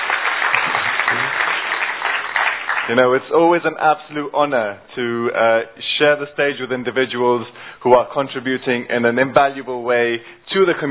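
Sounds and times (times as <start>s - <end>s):
audience applause for participants at a stage event: 0.0s - 3.0s
speech: 2.9s - 10.8s.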